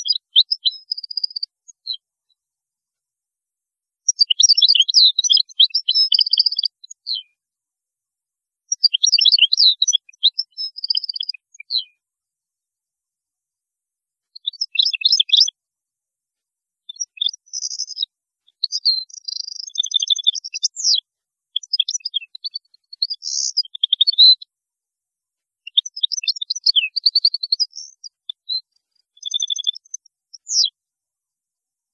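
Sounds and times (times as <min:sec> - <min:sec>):
European goldfinch song: 0:00.0 - 0:02.0, 0:04.1 - 0:07.3, 0:08.7 - 0:11.9, 0:14.4 - 0:15.5, 0:16.9 - 0:21.0, 0:21.6 - 0:24.4, 0:25.7 - 0:30.7.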